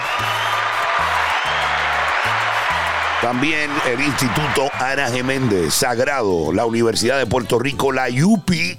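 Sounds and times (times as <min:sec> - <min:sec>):
applause: 0:00.0 - 0:06.3
speech: 0:03.2 - 0:08.7.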